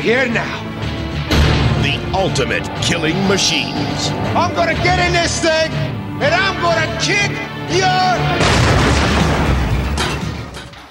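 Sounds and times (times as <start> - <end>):
speech: 0.0 - 0.7, 1.8 - 8.9
booming explosion sound effect in movie trailer: 8.4 - 10.0
crackling debris bursts: 8.4 - 10.9.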